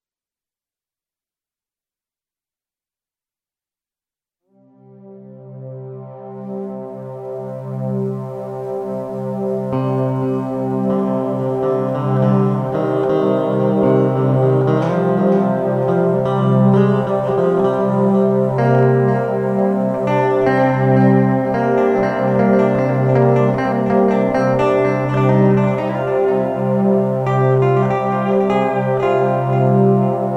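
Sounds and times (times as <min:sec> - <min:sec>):
deep guitar: 0:09.3 - 0:30.3.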